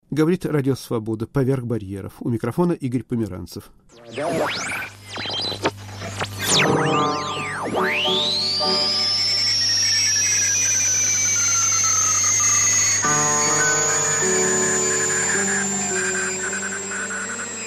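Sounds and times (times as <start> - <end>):
speech: 0.1 - 5.3
sweeping shortwave-style whistles in an electronic radio-art piece: 3.9 - 17.6
buzzing layered tones: 4.0 - 17.6.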